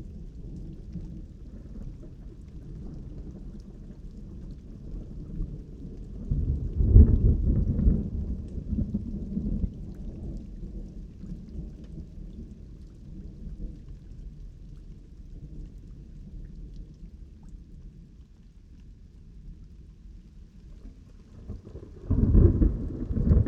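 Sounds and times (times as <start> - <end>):
thunder: 5.0 - 10.5, 20.9 - 23.4.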